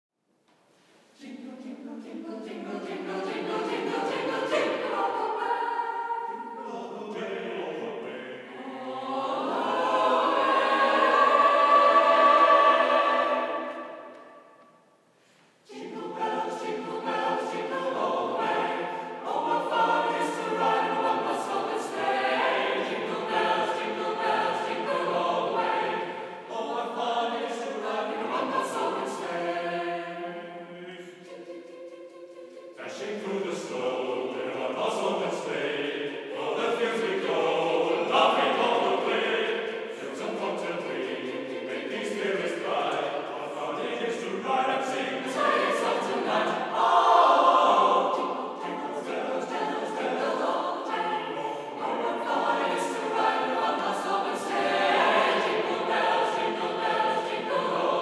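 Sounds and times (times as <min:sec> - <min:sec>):
Christmas song: 0:00.7 - 0:58.0.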